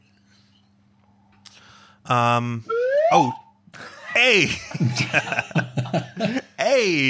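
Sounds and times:
faint low hum: 0.0s - 7.0s
speech: 2.1s - 7.0s
slide whistle sound effect: 2.7s - 3.6s
laughter: 3.8s - 6.6s.

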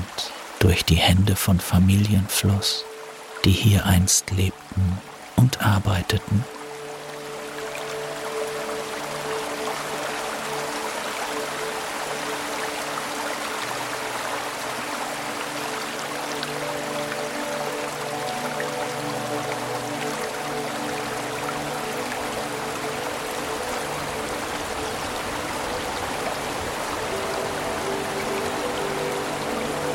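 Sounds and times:
babbling brook water flowing: 0.0s - 29.9s
speech: 0.6s - 6.5s.

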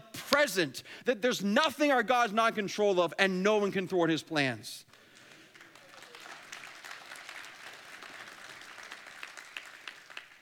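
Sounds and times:
speech: 0.4s - 4.9s
audience clapping: 4.8s - 10.4s.

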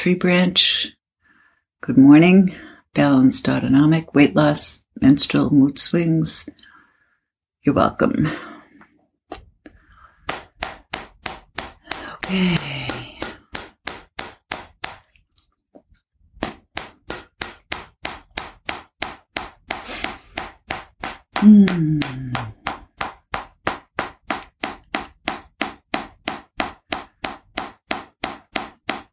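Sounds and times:
speech: 0.0s - 1.0s, 1.8s - 6.7s, 7.6s - 8.6s, 12.3s - 13.0s, 21.4s - 22.5s
fingertip tapping on the top of the head over the hypothalamus: 10.3s - 15.0s, 16.4s - 29.1s.

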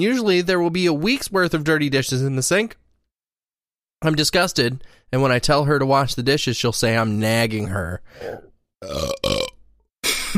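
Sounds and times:
speech: 0.0s - 2.8s, 4.0s - 9.4s
burp: 8.3s - 9.6s.

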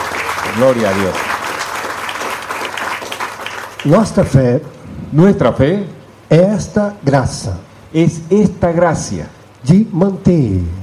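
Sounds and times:
audience applauding: 0.0s - 4.2s
speech: 0.6s - 1.3s, 3.8s - 10.8s.

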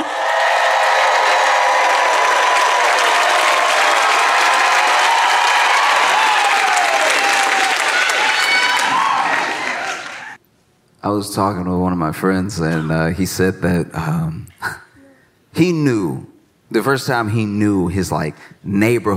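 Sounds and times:
Charleston audience applauding and cheering for comedian Josh Johnson: 0.0s - 10.4s
speech: 11.0s - 14.6s, 15.6s - 19.1s.

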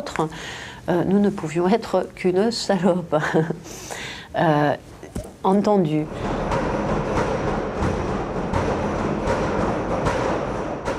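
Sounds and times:
speech: 0.0s - 6.4s
prisoners banging on cell doors: 6.0s - 10.9s.

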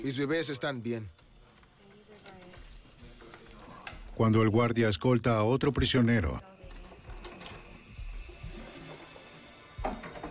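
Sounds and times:
speech: 0.0s - 1.2s, 4.2s - 6.5s
keys jingling on a keyring: 1.2s - 4.2s, 6.7s - 10.2s.

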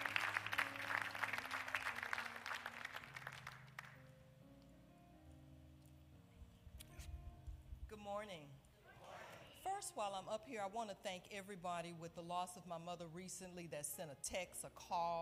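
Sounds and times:
church congregation clapping during a Sunday morning service: 0.0s - 4.1s
speech: 8.1s - 8.6s, 9.8s - 15.2s.

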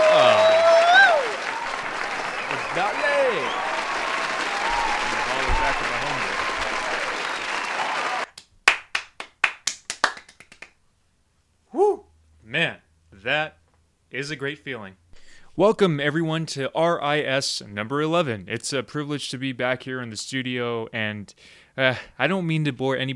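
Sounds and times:
audience applause at a studio show: 0.0s - 10.7s
speech: 14.2s - 15.0s, 15.6s - 23.1s.

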